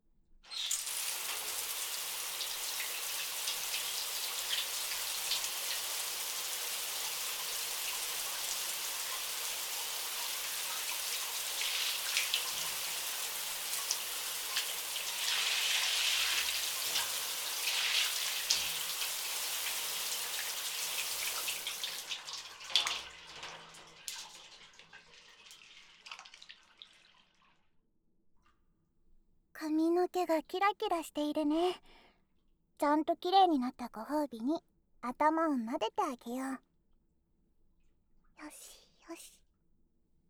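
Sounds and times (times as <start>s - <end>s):
shower water rinsing foam from hair: 0.5s - 22.0s
water dripping: 0.5s - 27.5s
speech: 30.2s - 32.0s, 32.8s - 36.7s, 38.4s - 39.4s.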